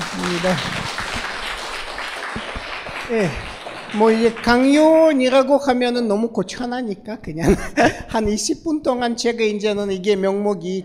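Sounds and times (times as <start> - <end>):
audience clapping: 0.0 - 5.2
speech: 0.3 - 0.9, 3.1 - 10.8
laughter: 7.4 - 8.2.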